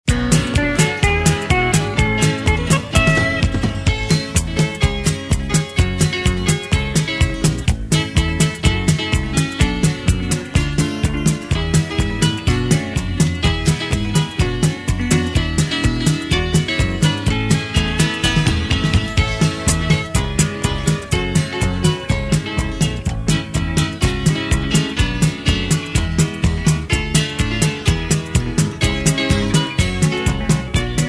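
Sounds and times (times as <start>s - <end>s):
music: 0.0s - 31.0s.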